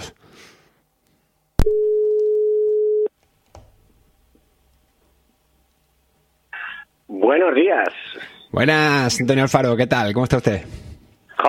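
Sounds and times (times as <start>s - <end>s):
telephone call tone while calling a guest: 1.6s - 3.1s
speech: 7.3s - 11.4s.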